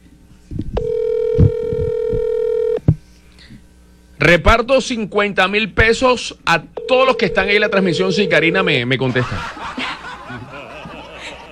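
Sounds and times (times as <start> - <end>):
phone call ringback tone: 0.8 - 2.8, 6.8 - 8.8
speech: 4.2 - 9.8
laughter: 8.9 - 11.5.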